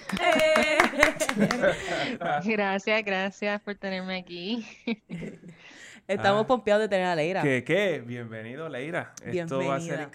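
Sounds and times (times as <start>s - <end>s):
applause, hands clapping: 0.0s - 1.9s
laughter: 0.0s - 2.6s
speech: 0.1s - 0.6s, 1.4s - 5.5s, 6.1s - 10.1s.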